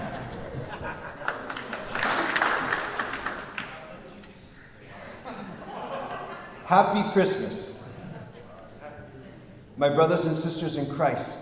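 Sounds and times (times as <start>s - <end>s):
scattered laughter: 0.0s - 2.6s, 4.9s - 6.7s, 7.8s - 8.6s
crowd clapping rhythmically: 1.2s - 3.9s
speech: 6.7s - 7.7s, 9.8s - 11.4s.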